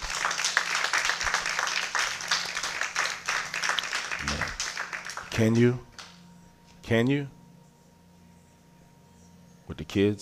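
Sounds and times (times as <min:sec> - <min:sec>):
crowd clapping hands in praise: 0:00.0 - 0:06.2
speech: 0:05.4 - 0:05.9, 0:06.9 - 0:07.4, 0:09.8 - 0:10.2.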